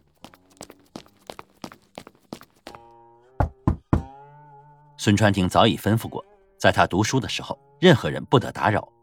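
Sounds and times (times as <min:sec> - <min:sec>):
knocking on a door: 0:03.4 - 0:04.1
speech: 0:05.0 - 0:09.0.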